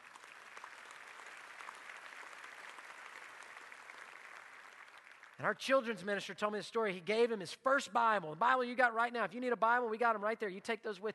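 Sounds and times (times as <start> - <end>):
audience clapping: 0.0 - 6.2
speech: 5.4 - 11.1.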